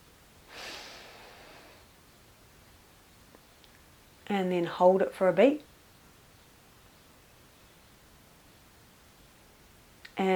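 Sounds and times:
deep breath in through the nose during a guided breathing exercise: 0:00.5 - 0:01.9
speech: 0:04.3 - 0:05.7.

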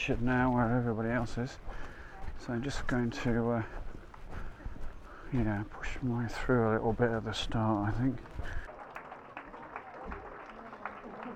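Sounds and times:
speech: 0:00.0 - 0:03.9, 0:05.3 - 0:08.6
murmur of voices: 0:00.0 - 0:11.3
spectators clapping for runners: 0:07.1 - 0:11.3.

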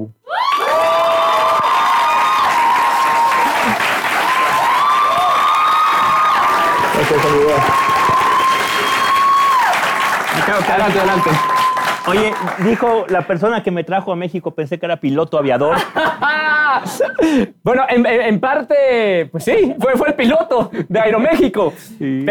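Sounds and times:
sustained cheers and whoops: 0:00.2 - 0:12.6
audience applause: 0:00.4 - 0:13.3
speech: 0:10.5 - 0:22.2
laughter: 0:15.7 - 0:17.4.

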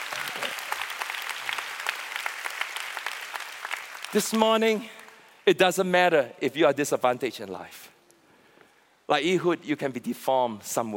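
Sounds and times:
audience applauding: 0:00.0 - 0:05.2
speech: 0:04.1 - 0:07.8, 0:09.1 - 0:10.9.

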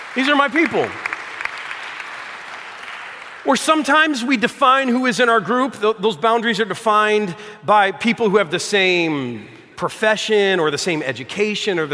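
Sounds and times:
audience clapping: 0:00.0 - 0:04.2
speech: 0:00.2 - 0:01.1, 0:03.4 - 0:11.9.

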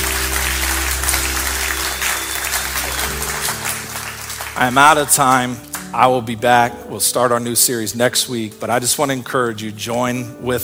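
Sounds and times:
audience applause: 0:00.0 - 0:06.0
low sustained organ or keyboard chord: 0:00.0 - 0:08.8
speech: 0:04.6 - 0:10.6.

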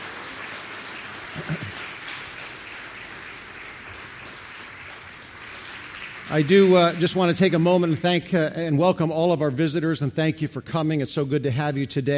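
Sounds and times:
audience clapping hands: 0:00.0 - 0:08.4
speech: 0:01.4 - 0:01.8, 0:06.3 - 0:12.1.

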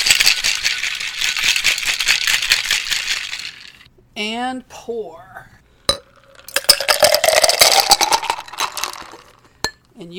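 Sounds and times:
cocktail shaker being shaken: 0:00.0 - 0:03.9, 0:06.9 - 0:09.4
speech: 0:04.2 - 0:05.5, 0:10.0 - 0:10.1.

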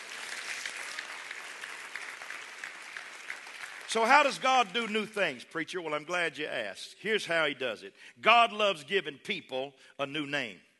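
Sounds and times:
audience clapping: 0:00.0 - 0:05.1
speech: 0:03.9 - 0:10.7.

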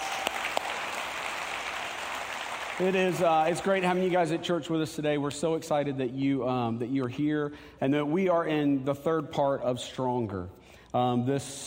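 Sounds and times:
church congregation applauding at a service: 0:00.0 - 0:04.4
speech: 0:02.8 - 0:11.6.

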